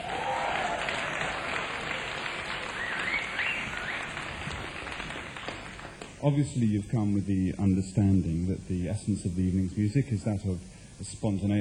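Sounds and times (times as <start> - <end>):
audience clapping: 0.0 - 6.2
speech: 6.2 - 11.6.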